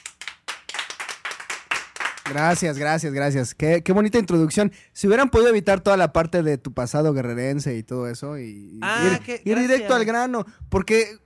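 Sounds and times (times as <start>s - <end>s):
audience applause: 0.0s - 2.8s
speech: 2.3s - 11.2s.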